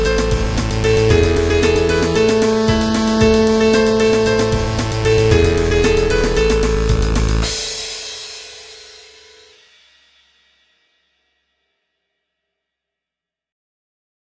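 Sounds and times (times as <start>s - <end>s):
techno remix: 0.0s - 8.0s.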